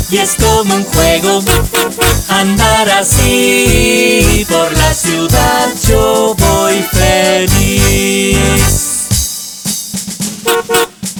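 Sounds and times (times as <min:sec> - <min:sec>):
speech: 0:00.1 - 0:08.8
car horn honking: 0:01.4 - 0:02.4, 0:10.4 - 0:11.0.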